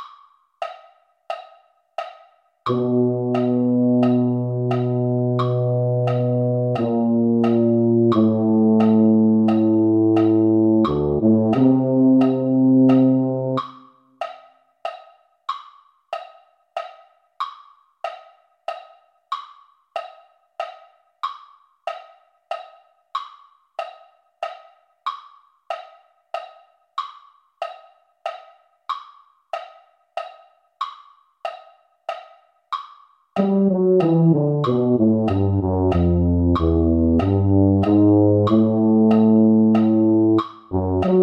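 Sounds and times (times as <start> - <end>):
tuba: 2.7 - 13.9, 33.4 - 41.2.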